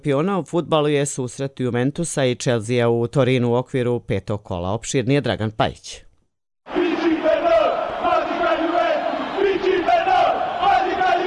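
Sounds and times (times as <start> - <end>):
speech: 0.0 - 6.1
Juventus football fans singing in the Turin stadium: 6.7 - 11.2.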